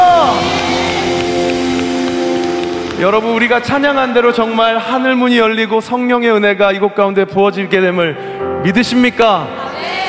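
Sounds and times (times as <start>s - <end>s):
audience applause: 0.0s - 4.8s
speech: 3.0s - 9.6s.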